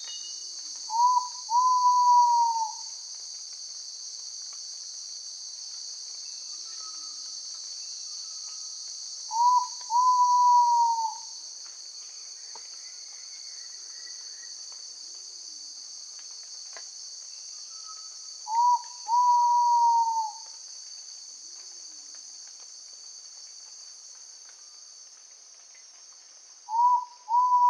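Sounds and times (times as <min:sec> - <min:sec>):
Ivory-breasted pitta Pitta maxima whistling call in Indonesia: 0:00.9 - 0:02.8, 0:09.3 - 0:11.2, 0:17.7 - 0:20.4, 0:26.7 - 0:27.6.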